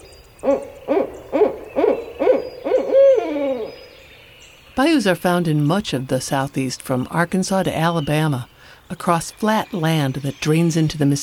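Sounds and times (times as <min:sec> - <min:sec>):
barred owl hooting: 0:00.0 - 0:04.3
speech: 0:00.4 - 0:00.7, 0:04.8 - 0:11.2.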